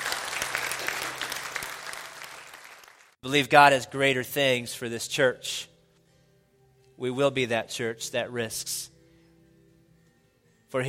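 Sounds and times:
audience applause: 0:00.0 - 0:03.2
speech: 0:03.2 - 0:05.7, 0:07.0 - 0:08.9.

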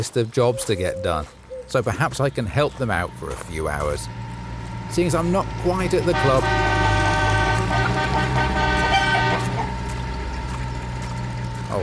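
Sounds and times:
speech: 0:00.0 - 0:04.3, 0:04.9 - 0:06.7
tractor pulling a trailer rumbling past: 0:01.2 - 0:11.8
tractor horn blaring: 0:02.8 - 0:10.4.

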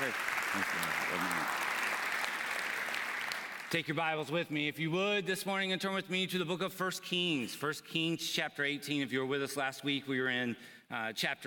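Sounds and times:
audience applause: 0:00.0 - 0:03.8
speech: 0:00.1 - 0:01.7, 0:03.7 - 0:11.4.

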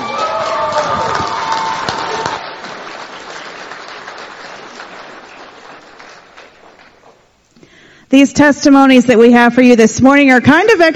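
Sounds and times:
audience applause: 0:00.0 - 0:07.3
speech: 0:08.1 - 0:10.9.

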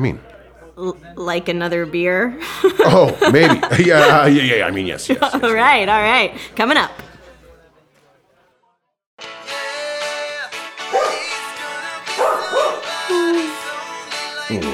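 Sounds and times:
speech: 0:00.0 - 0:07.1
laughter: 0:01.9 - 0:07.5
dog barking: 0:10.9 - 0:11.3, 0:12.2 - 0:13.0.

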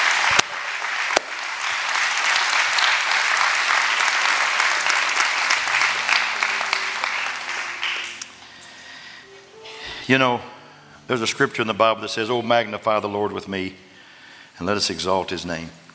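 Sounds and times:
audience clapping: 0:00.0 - 0:08.6
speech: 0:10.1 - 0:10.5, 0:11.1 - 0:13.9, 0:14.6 - 0:15.8.

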